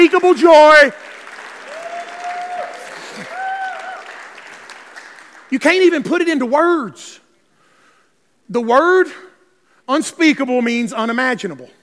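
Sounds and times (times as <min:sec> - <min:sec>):
speech: 0:00.0 - 0:01.0, 0:05.5 - 0:07.2, 0:08.5 - 0:09.3, 0:09.9 - 0:11.8
crowd clapping hands: 0:00.0 - 0:06.0
voices cheering and whooping: 0:01.6 - 0:04.1.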